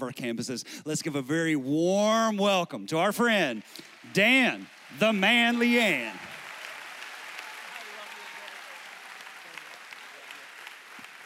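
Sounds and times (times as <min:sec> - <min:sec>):
speech: 0:00.0 - 0:06.3
audience applause: 0:03.0 - 0:11.2.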